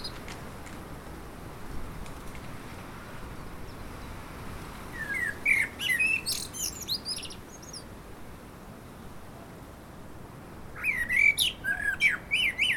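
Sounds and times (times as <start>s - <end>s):
common blackbird Turdus merula singing: 4.9s - 7.9s, 10.8s - 12.7s.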